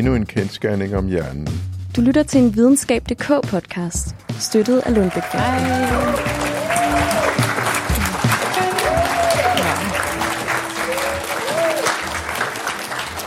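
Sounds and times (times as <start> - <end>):
speech: 0.0 - 6.4
audience applause welcoming podcast hosts at Experimentarium: 4.4 - 13.2.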